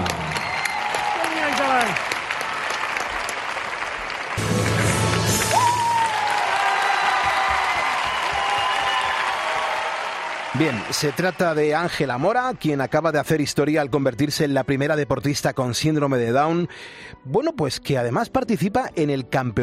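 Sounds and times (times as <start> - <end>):
cheers: 0.0 - 4.4, 5.1 - 13.4
audience applause: 0.0 - 13.4
speech: 10.6 - 19.6.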